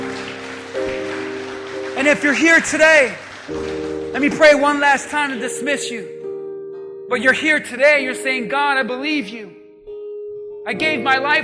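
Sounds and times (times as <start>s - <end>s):
round of applause: 0.0s - 5.4s
speech: 2.0s - 6.2s, 7.1s - 9.6s, 10.6s - 11.4s.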